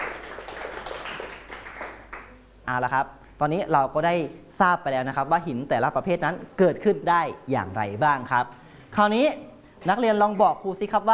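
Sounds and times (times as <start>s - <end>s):
students in a classroom clapping for a classmate's correct answer: 0.0s - 2.4s
speech: 2.7s - 11.1s.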